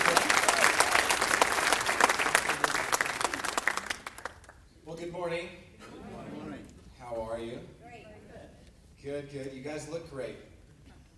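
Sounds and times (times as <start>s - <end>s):
audience clapping to welcome a speaker: 0.0s - 4.7s
speech: 9.2s - 10.5s.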